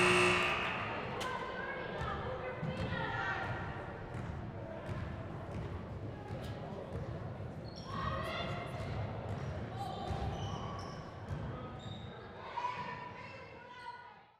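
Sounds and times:
girls junior varsity basketball game ambience from the sideline: 0:00.0 - 0:14.1.

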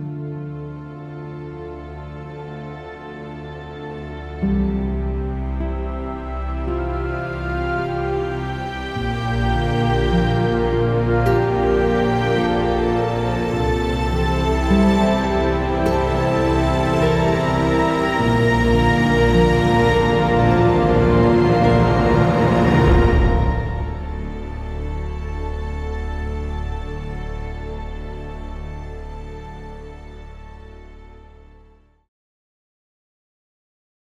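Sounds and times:
slow cinematic trailer music at 52 BPM: 0:00.1 - 0:31.6.

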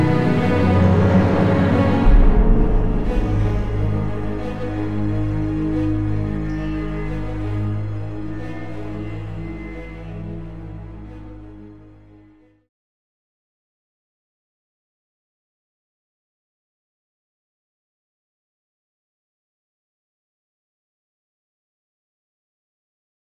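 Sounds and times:
slow cinematic trailer music: 0:00.0 - 0:12.5.

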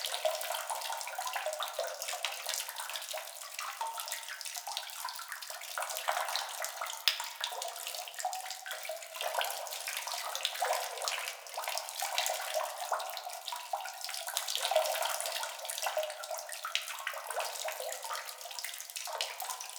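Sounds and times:
liquid water drips ambience: 0:00.0 - 0:19.7.

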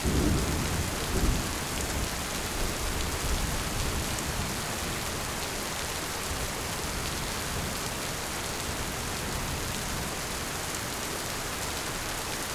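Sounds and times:
thunder in a thunderstorm: 0:00.0 - 0:02.2
heavy rain in a thunderstorm: 0:00.0 - 0:12.5.

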